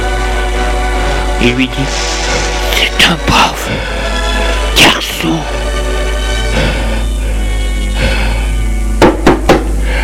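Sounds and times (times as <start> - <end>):
steady low tonal music: 0.0 - 10.0
speech: 1.4 - 2.2, 2.8 - 4.0, 4.8 - 5.6
knocking on a door: 9.0 - 9.7.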